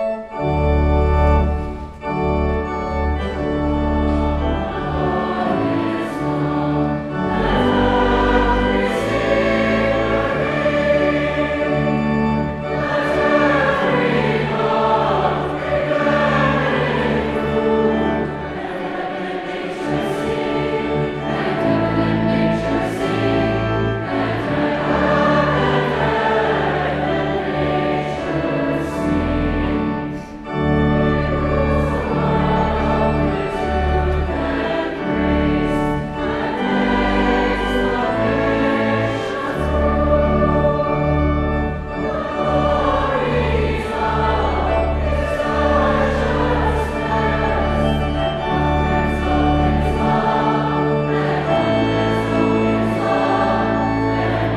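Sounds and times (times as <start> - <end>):
audience singing a Christmas carol: 0.2 - 54.5.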